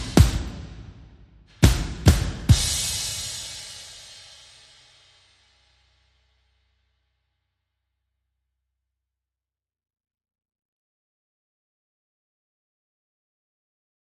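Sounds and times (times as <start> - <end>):
drums: 0.0 - 5.7.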